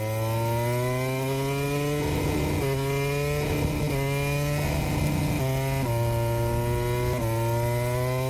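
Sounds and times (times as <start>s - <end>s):
MotoGP racing motorcycle engine revving: 0.0s - 8.2s.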